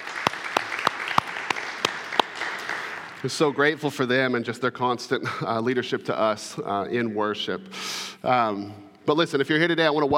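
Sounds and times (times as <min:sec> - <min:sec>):
clapping for a church worship team: 0:00.0 - 0:03.8
speech: 0:03.2 - 0:10.1.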